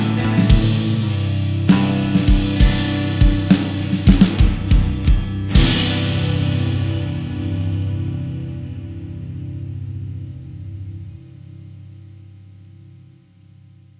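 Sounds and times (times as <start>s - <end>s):
piano instrumental: 0.0s - 7.8s.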